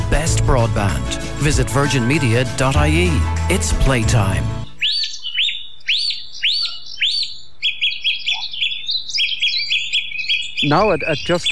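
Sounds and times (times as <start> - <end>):
speech: 0.5 - 4.6, 10.6 - 11.5
dawn chorus birdsong: 4.7 - 11.5.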